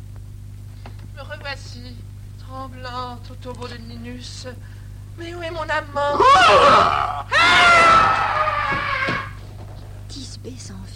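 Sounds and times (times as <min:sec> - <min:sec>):
speech: 0:01.5 - 0:08.9, 0:10.4 - 0:10.9
human voice imitating a lion's roar: 0:06.1 - 0:09.4.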